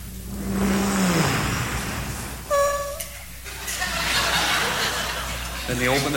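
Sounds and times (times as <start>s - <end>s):
car driving up into a driveway: 0.0s - 4.5s
short high squeak: 0.8s - 3.3s
laughter: 3.5s - 6.1s
speech: 5.8s - 6.1s.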